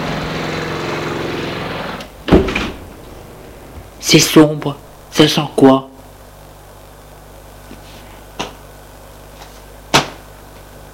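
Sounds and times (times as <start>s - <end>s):
entrance door being pushed open: 2.3s - 3.9s
speech: 4.1s - 5.9s.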